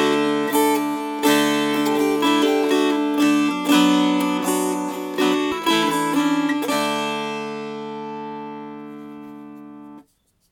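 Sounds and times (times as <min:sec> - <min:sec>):
strummed schottische tune: 0:00.0 - 0:10.4.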